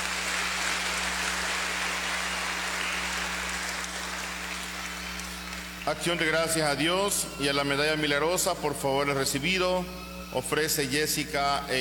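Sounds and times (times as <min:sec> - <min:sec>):
applause: 0:00.0 - 0:06.1
speech: 0:05.8 - 0:11.7.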